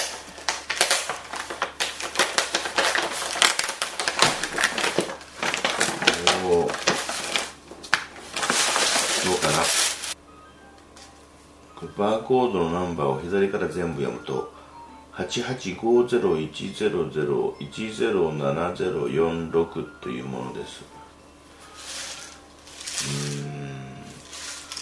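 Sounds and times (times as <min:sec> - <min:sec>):
cup noodle plastic packaging crinkling and tearing: 0:00.0 - 0:10.2, 0:21.6 - 0:24.8
speech: 0:12.0 - 0:14.5, 0:15.2 - 0:21.0
person murmuring: 0:23.0 - 0:24.2.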